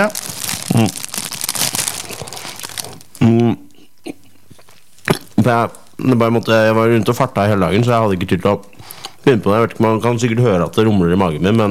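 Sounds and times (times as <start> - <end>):
speech: 0.0 - 1.0, 5.5 - 11.7
wrapper crinkling: 0.0 - 3.3, 4.3 - 6.5
chewing: 1.9 - 6.0.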